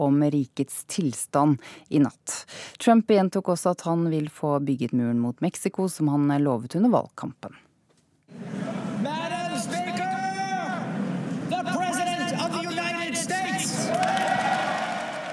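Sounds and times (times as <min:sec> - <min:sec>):
speech: 0:00.0 - 0:07.6
crowd applauding as president enters the hall: 0:08.3 - 0:15.3
whoops and shouted voices: 0:13.3 - 0:15.3.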